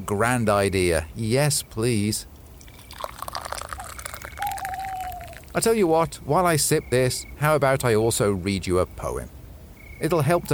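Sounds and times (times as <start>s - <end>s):
speech: 0.0s - 2.4s, 5.6s - 9.4s, 10.0s - 10.5s
hot chocolate poured from a thermos: 2.3s - 5.6s.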